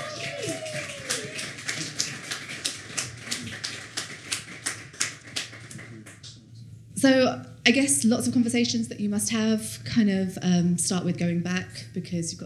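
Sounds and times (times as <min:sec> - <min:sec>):
audience applause: 0:00.0 - 0:06.2
speech: 0:07.0 - 0:12.4.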